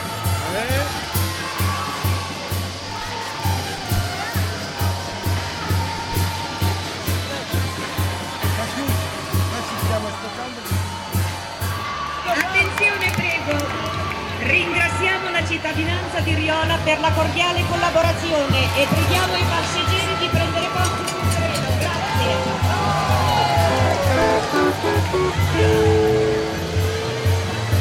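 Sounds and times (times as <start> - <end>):
cheering and voices: 0.0 - 27.7
crowd clapping: 11.9 - 15.3, 20.8 - 27.7
speech: 16.8 - 20.4.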